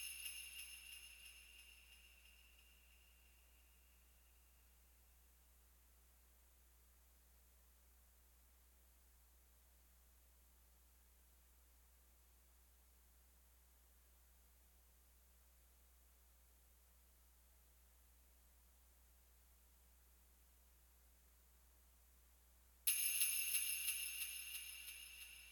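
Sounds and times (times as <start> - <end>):
Christmas ambience music: 0.0 - 3.1, 22.9 - 25.5.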